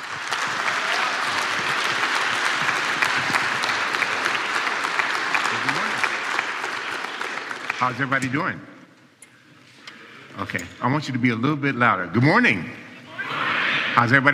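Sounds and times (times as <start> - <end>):
audience applause at a chapel service welcoming a guest speaker: 0.0 - 8.5
speech: 7.8 - 8.8, 10.4 - 12.8, 14.0 - 14.3.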